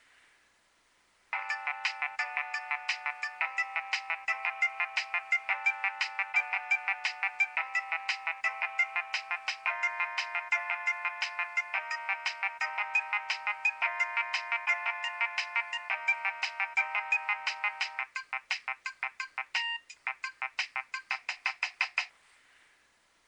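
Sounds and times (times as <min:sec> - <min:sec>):
Nokia 3100 ringtone: 0:01.4 - 0:21.6.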